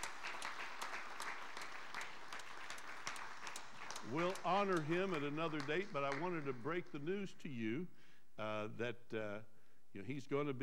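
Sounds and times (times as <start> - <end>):
audience applause: 0.0 - 6.9
speech: 4.0 - 10.6.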